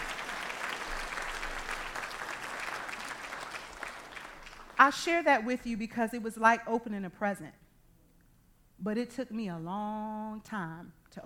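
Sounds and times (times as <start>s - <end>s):
audience applause at a talk: 0.0s - 4.8s
speech: 4.8s - 7.6s, 8.8s - 11.2s.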